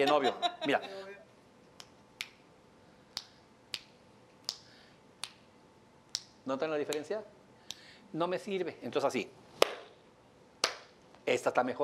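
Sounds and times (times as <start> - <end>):
speech: 0.0 - 1.0, 6.4 - 7.4, 8.1 - 9.4, 11.2 - 11.8
laughter: 0.0 - 1.2
finger snapping: 1.8 - 2.4, 3.1 - 5.5, 6.1 - 7.9, 10.6 - 10.9.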